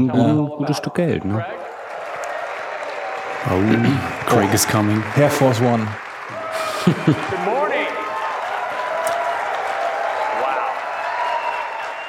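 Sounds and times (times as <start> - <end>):
speech: 0.0 - 1.7, 3.4 - 6.0, 6.8 - 7.6
large keynote audience applauding: 1.3 - 12.0
laughter: 3.5 - 8.2.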